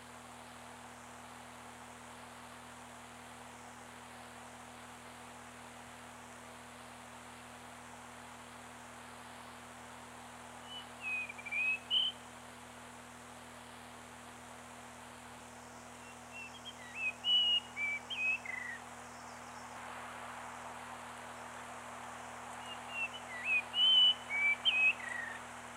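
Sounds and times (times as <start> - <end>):
bird whistling short notes: 16.4 - 18.8, 22.6 - 25.4.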